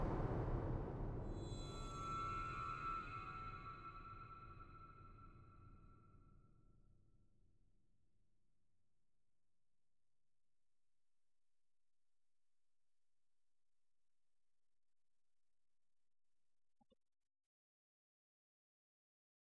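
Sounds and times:
percussion: 0.0s - 6.3s.

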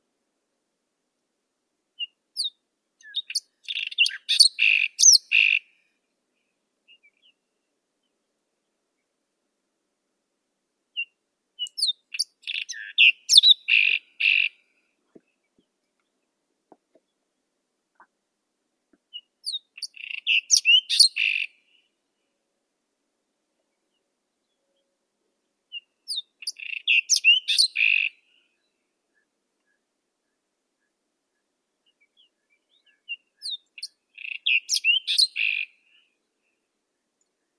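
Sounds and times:
white-throated robin Irania gutturalis: 2.0s - 5.6s, 10.9s - 14.6s, 19.1s - 21.6s, 25.7s - 28.2s, 31.8s - 36.6s.

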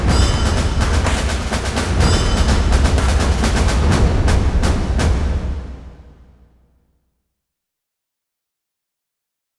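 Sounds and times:
percussion: 0.0s - 6.6s.

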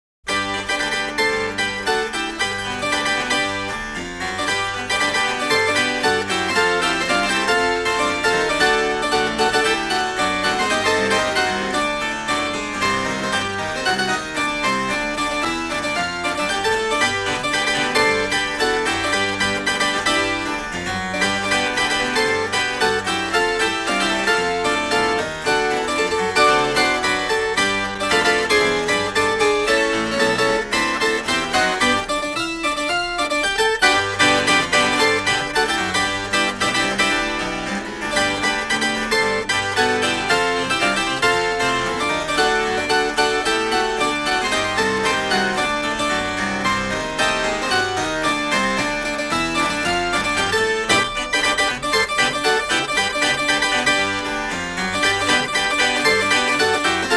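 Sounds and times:
harpsichord music: 0.2s - 57.1s.

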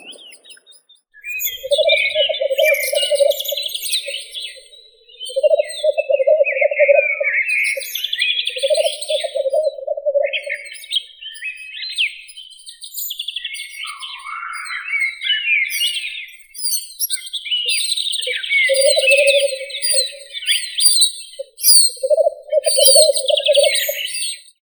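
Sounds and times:
black grouse Tetrao tetrix calling: 0.0s - 0.6s, 1.3s - 11.5s, 13.8s - 15.6s, 17.7s - 24.4s.

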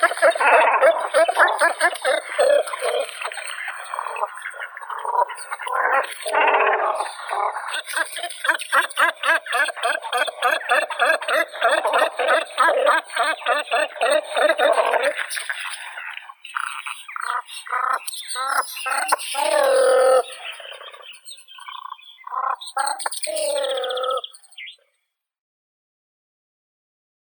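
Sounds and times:
great cormorant Phalacrocorax carbo calling: 0.0s - 24.9s.

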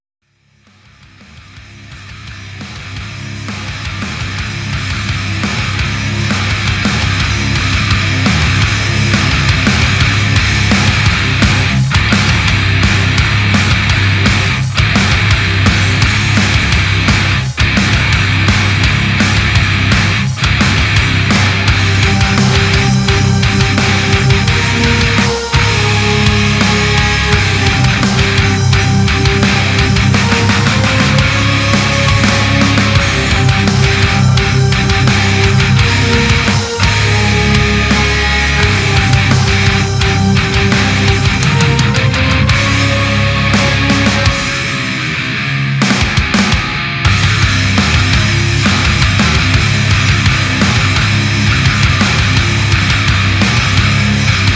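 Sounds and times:
instrumental music: 3.6s - 54.5s.

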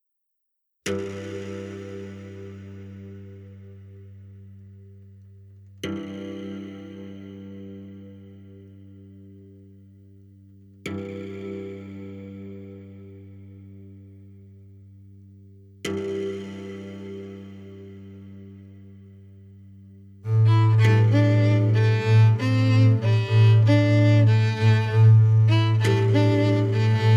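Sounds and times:
string quartet: 20.3s - 27.1s.

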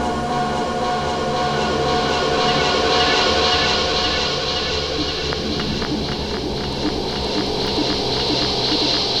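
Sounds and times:
sub bass dub soundcheck: 0.1s - 9.1s.

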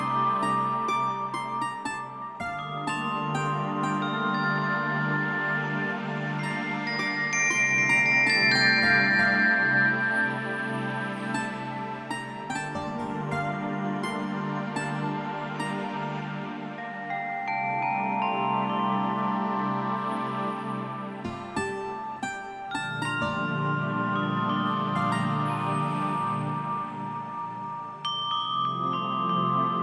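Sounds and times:
relaxing guitar: 0.0s - 28.0s
relaxing bells: 0.0s - 29.8s.

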